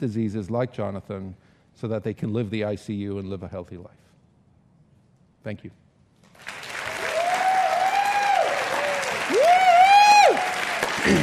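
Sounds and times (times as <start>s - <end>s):
speech: 0.0s - 4.1s, 5.4s - 5.8s
audience standing and clapping: 6.3s - 11.2s.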